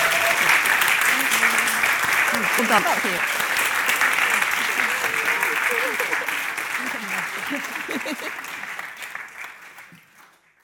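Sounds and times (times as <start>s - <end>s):
audience applause: 0.0s - 10.6s
laughter: 1.1s - 8.8s
speech: 2.6s - 3.4s, 7.5s - 8.3s.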